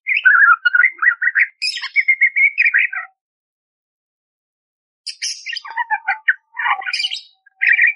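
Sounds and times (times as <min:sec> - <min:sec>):
budgerigar warbling song: 0:00.0 - 0:03.2, 0:05.1 - 0:07.9.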